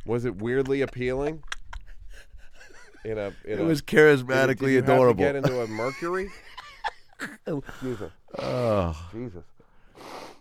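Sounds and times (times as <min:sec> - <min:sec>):
laughter: 0:00.0 - 0:08.2
speech: 0:00.1 - 0:01.5, 0:03.0 - 0:06.6, 0:07.2 - 0:10.2
person blowing nose in forceful snorting bursts: 0:10.0 - 0:10.4.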